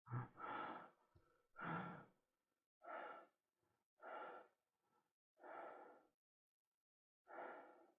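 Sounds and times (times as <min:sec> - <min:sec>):
man breathing heavily: 0:00.1 - 0:02.2, 0:02.8 - 0:03.4, 0:04.0 - 0:04.6, 0:05.4 - 0:06.1, 0:07.3 - 0:07.9.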